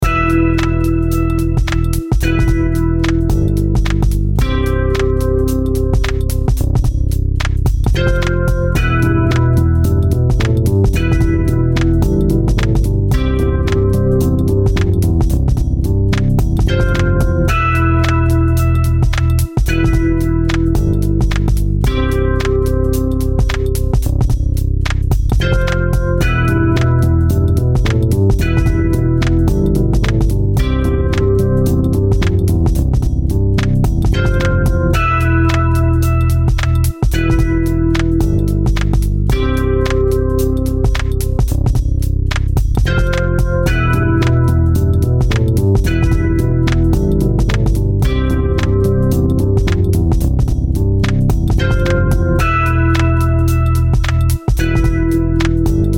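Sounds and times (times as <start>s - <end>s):
heavy bass music: 0.0s - 55.9s.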